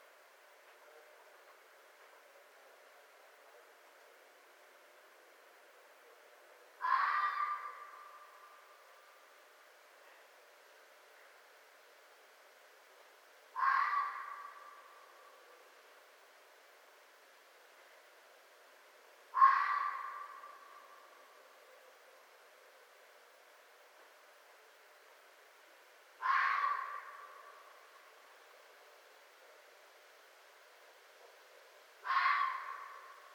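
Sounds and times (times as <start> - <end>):
red fox in North America: 6.1 - 8.9, 13.5 - 15.8, 19.3 - 22.4, 26.2 - 28.2, 31.1 - 33.3.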